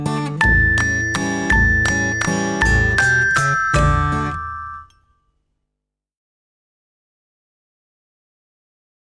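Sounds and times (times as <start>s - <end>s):
backing music: 0.0s - 4.9s.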